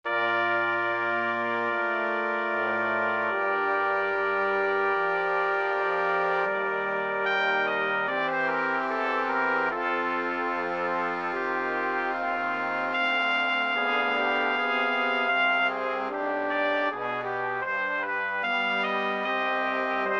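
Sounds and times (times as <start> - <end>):
brass quintet: 0.0 - 20.1.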